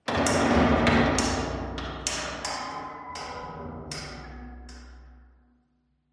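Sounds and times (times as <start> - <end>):
metal pipe bang: 0.1 - 5.2.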